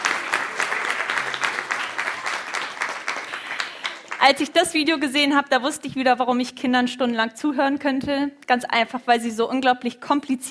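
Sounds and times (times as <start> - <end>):
audience applause: 0.0 - 4.4
speech: 4.3 - 10.4.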